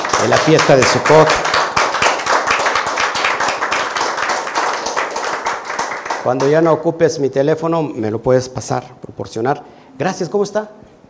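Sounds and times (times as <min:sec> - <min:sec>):
audience applause: 0:00.0 - 0:06.6
speech: 0:00.2 - 0:01.6, 0:06.2 - 0:10.9.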